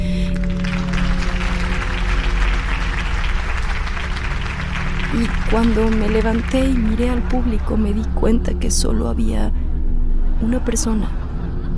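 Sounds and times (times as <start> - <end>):
applause: 0.2 - 7.4
speech: 5.1 - 9.6, 10.4 - 11.2.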